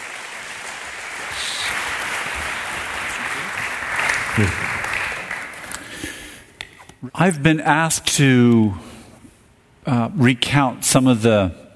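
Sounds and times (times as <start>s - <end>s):
audience applause: 0.0s - 6.0s
speech: 4.4s - 4.7s, 7.0s - 8.9s, 9.9s - 11.6s.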